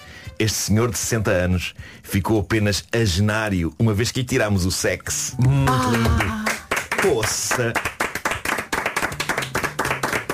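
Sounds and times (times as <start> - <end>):
speech: 0.4 - 6.4, 7.0 - 7.9
audience clapping in a fast even rhythm: 5.6 - 10.3.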